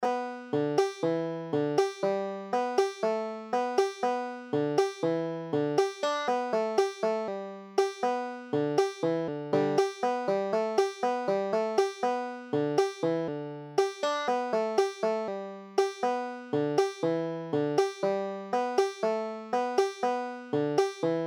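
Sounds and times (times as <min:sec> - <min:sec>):
banjo: 0:00.0 - 0:21.2.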